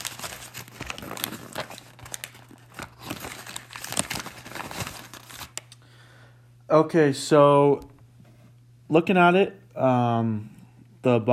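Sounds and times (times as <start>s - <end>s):
plastic and paper sandwich packaging being torn open: 0.0s - 5.8s
low steady hum: 0.0s - 11.3s
speech: 6.7s - 7.9s, 8.9s - 11.3s.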